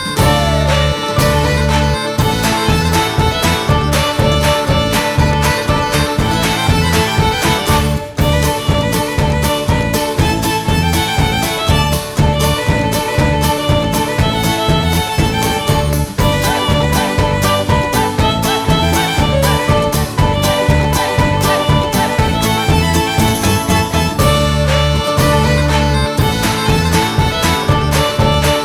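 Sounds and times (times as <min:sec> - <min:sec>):
victory jingle: 0:00.2 - 0:28.6.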